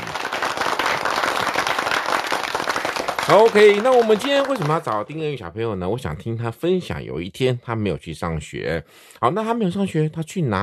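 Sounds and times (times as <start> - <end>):
applause: 0.0 - 5.2
speech: 3.3 - 10.6.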